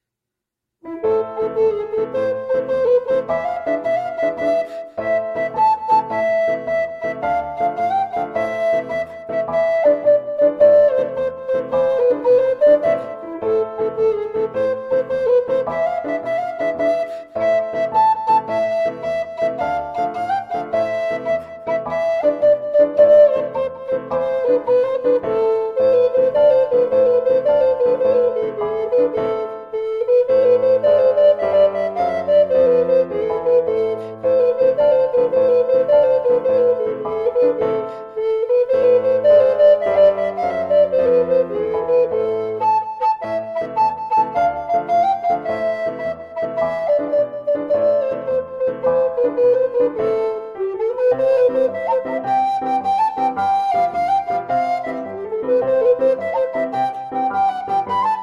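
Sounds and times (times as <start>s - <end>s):
Neapolitan tarantella music: 0.8s - 58.2s.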